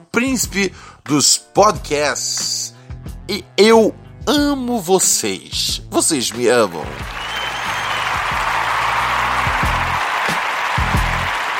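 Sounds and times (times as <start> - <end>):
speech: 0.1 - 2.5, 3.3 - 7.4
audience applause: 6.9 - 11.5.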